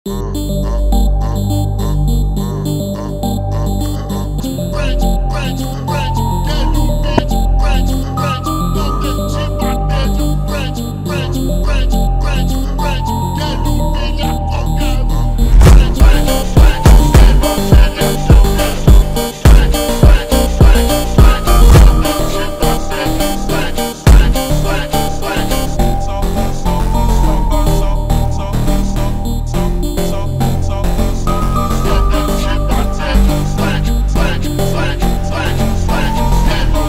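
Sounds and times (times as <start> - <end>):
slowed phonk music: 0.1 - 36.8.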